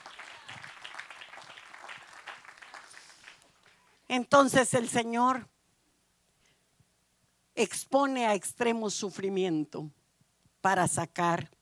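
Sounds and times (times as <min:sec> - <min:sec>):
audience applause: 0:00.0 - 0:04.0
speech: 0:04.1 - 0:05.5, 0:07.6 - 0:10.0, 0:10.6 - 0:11.5.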